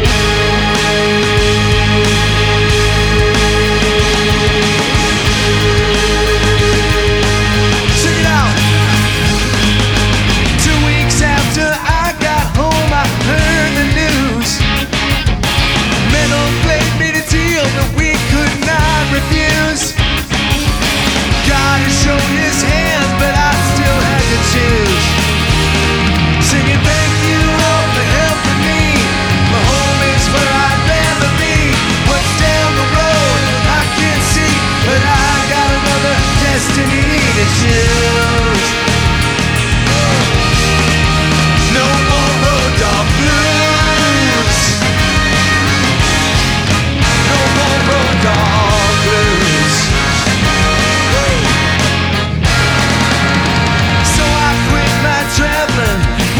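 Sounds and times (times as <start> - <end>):
blues music: 0.0 - 56.3.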